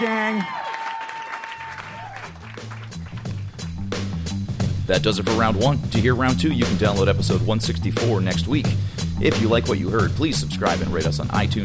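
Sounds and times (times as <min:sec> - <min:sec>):
speech: 0:00.0 - 0:00.6, 0:04.9 - 0:11.6
audience applause: 0:00.0 - 0:03.8.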